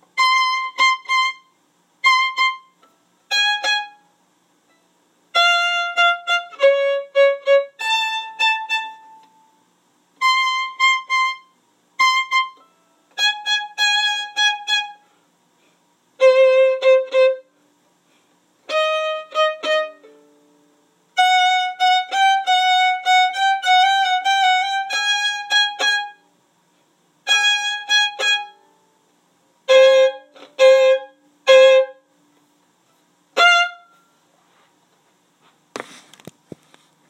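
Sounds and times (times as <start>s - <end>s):
first violin top part: 0.1s - 4.1s, 5.3s - 9.5s, 10.2s - 15.0s, 16.2s - 17.5s, 18.6s - 20.4s, 21.2s - 26.3s, 27.2s - 28.6s, 29.6s - 32.0s, 33.3s - 34.0s.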